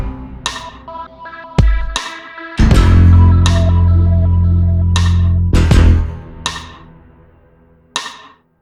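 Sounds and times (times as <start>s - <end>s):
instrumental music: 0.5s - 6.8s.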